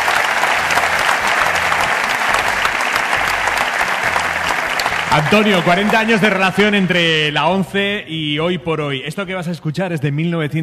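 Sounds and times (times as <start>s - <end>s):
audience applause: 0.0s - 8.0s
speech: 5.1s - 10.6s.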